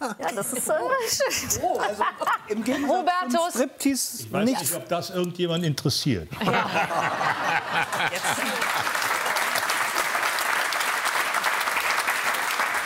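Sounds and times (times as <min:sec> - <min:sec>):
laughter: 0:00.0 - 0:03.2, 0:06.3 - 0:09.6
speech: 0:00.1 - 0:08.7
audience applause: 0:07.1 - 0:12.8.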